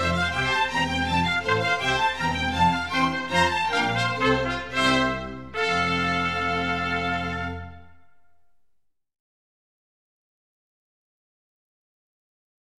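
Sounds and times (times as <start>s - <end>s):
classical concerto in F major: 0.0s - 8.5s.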